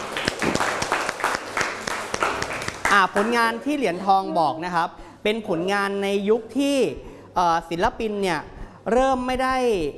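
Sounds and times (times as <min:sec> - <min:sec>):
audience applause: 0:00.0 - 0:03.0
speech: 0:02.9 - 0:09.9.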